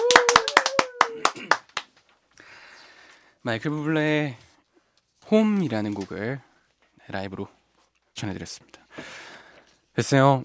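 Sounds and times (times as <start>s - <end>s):
audience clapping: 0.0s - 2.1s
speech: 3.4s - 4.4s, 5.3s - 6.5s, 7.1s - 7.6s, 8.2s - 9.2s, 10.0s - 10.4s.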